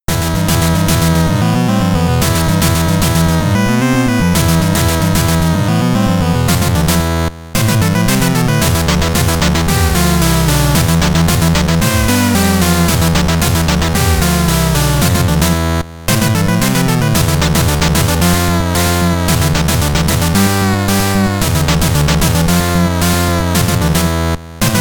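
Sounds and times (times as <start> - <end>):
battle music: 0.0 - 24.7.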